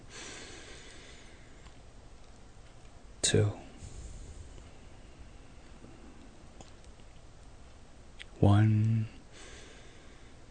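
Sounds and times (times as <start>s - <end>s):
deep breath in through the nose during a guided relaxation exercise: 0.1s - 1.7s, 3.8s - 6.4s, 9.3s - 10.4s
speech: 3.2s - 3.6s, 8.4s - 9.1s.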